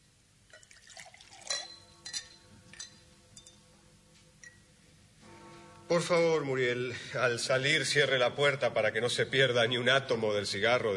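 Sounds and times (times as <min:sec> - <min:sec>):
liqueur poured into glasses: 0:00.5 - 0:02.9
speech: 0:05.9 - 0:10.9.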